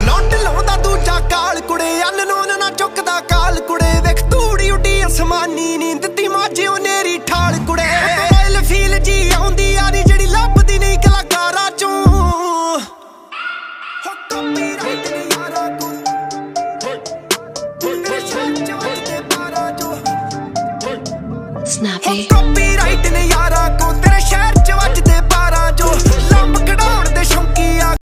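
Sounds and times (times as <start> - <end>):
Desi Punjabi ringtone music: 0.0 - 12.6, 14.0 - 28.0.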